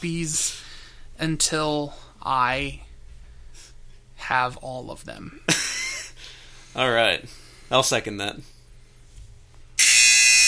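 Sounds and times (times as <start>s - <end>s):
speech: 0.0s - 0.6s, 1.2s - 2.9s, 4.2s - 5.6s, 6.8s - 8.5s
buzzer: 9.8s - 10.4s.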